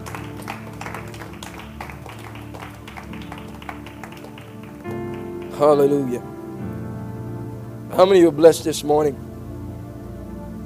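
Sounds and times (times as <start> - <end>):
audience hand clapping: 0.0 - 6.2
speech: 5.6 - 6.4, 8.0 - 9.2.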